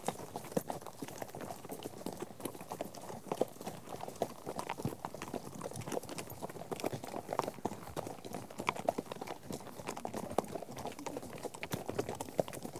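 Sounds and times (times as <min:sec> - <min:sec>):
horse hooves clip-clopping: 0:00.0 - 0:12.7.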